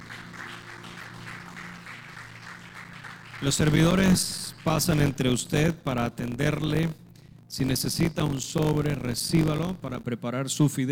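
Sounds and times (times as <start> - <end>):
audience clapping in a steady rhythm: 0.0 - 5.8
sustained low musical drone: 0.0 - 10.2
speech: 3.4 - 10.9.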